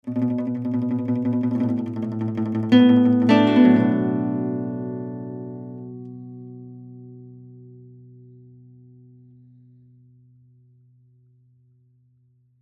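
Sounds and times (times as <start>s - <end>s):
zhongruan playing: 0.0s - 7.2s.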